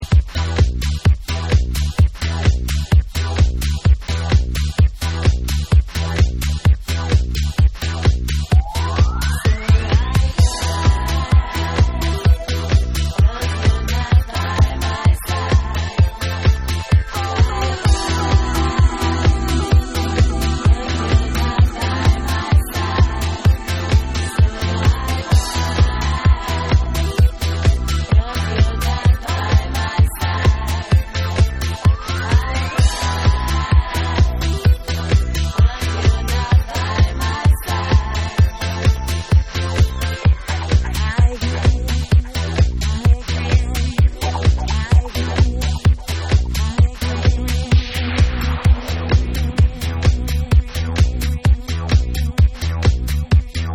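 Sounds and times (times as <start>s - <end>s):
dub music: 0.0s - 53.7s.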